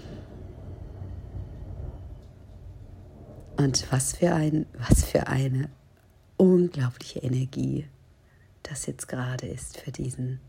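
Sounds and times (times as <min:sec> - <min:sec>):
rumble of thunder: 0:00.0 - 0:06.4
steady rain: 0:00.0 - 0:07.3
speech: 0:03.6 - 0:05.8, 0:06.4 - 0:08.0, 0:08.6 - 0:10.4.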